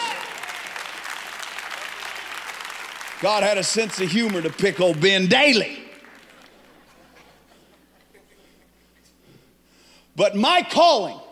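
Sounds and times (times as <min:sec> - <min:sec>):
audience clapping hands: 0:00.0 - 0:07.5
speech: 0:03.2 - 0:05.8, 0:10.2 - 0:11.2
laughter: 0:06.2 - 0:09.2.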